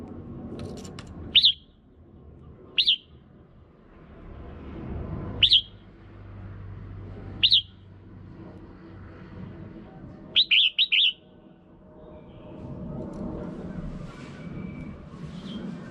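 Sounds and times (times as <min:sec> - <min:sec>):
red-whiskered bulbul chirping: 0:01.4 - 0:01.7, 0:02.8 - 0:03.1, 0:05.4 - 0:05.8, 0:07.4 - 0:07.7, 0:10.4 - 0:11.2.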